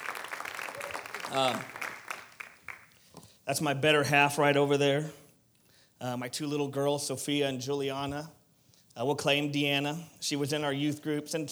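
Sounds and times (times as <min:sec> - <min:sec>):
audience hand clapping: 0:00.0 - 0:03.1
speech: 0:01.3 - 0:01.8, 0:03.5 - 0:05.2, 0:06.0 - 0:08.4, 0:09.0 - 0:11.5.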